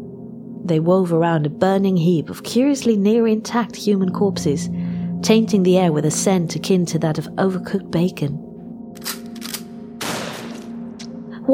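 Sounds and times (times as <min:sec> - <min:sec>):
speech: 0:00.7 - 0:08.4, 0:09.0 - 0:09.2
steady droning hum: 0:04.0 - 0:07.7
gunshots fired at a lobster droid, audio drama effect: 0:10.0 - 0:10.7.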